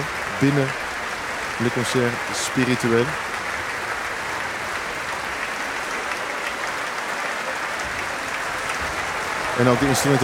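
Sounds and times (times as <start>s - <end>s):
concert audience applause: 0.0s - 10.2s
speech: 0.4s - 0.8s, 1.6s - 3.3s, 9.6s - 10.2s.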